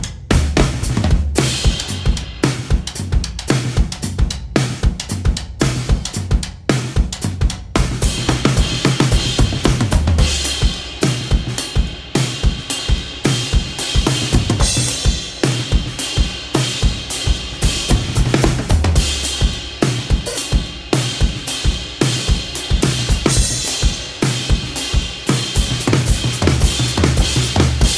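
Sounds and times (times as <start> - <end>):
big beat music: 0.1 - 27.9.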